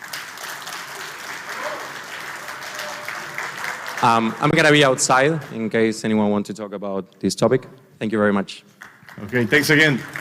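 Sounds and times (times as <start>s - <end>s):
audience round of applause: 0.0s - 5.4s, 8.8s - 10.1s
speech: 4.0s - 10.1s.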